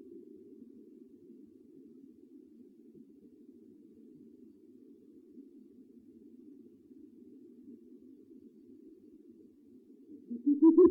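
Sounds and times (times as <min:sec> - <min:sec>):
owl hooting: 0:10.2 - 0:10.8.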